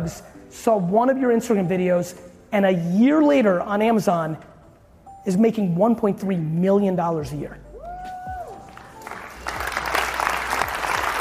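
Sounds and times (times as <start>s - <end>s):
speech: 0.0s - 4.5s, 5.2s - 7.6s
audience clapping: 8.6s - 11.1s.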